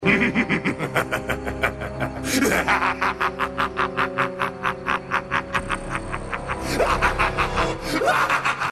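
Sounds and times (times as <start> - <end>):
laughing: 0.0 - 8.7.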